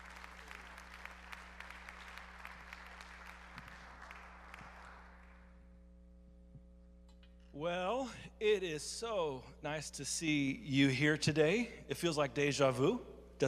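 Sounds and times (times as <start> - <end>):
audience clapping: 0.0 - 5.5
speech: 7.6 - 13.4.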